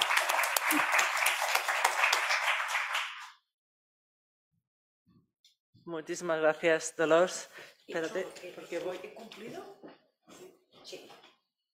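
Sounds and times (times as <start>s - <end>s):
audience applause: 0.0s - 3.3s
speech: 0.7s - 1.0s, 5.9s - 10.0s.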